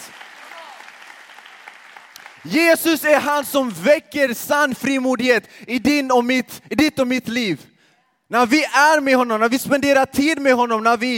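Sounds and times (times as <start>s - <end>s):
audience applause: 0.0s - 2.6s
speech: 2.4s - 7.7s, 8.3s - 11.1s.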